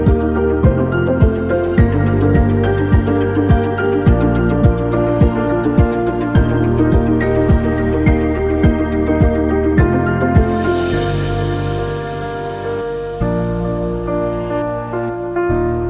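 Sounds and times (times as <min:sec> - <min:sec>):
piano beat: 0:00.0 - 0:15.8.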